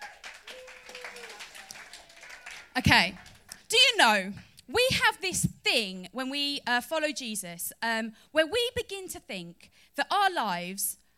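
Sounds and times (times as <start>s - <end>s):
audience applause: 0.0s - 3.6s
speech: 2.8s - 11.0s.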